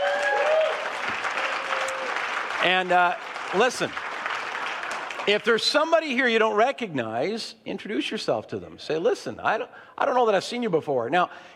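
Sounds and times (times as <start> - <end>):
church congregation applause welcoming visitors at a morning service: 0.0 - 6.1
speech: 2.6 - 4.1, 5.3 - 11.5.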